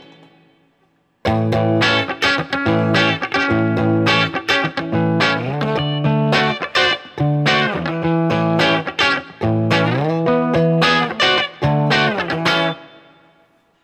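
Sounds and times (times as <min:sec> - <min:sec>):
1998 Guild Starfire 4 guitar seventh chord: 0:01.3 - 0:13.2.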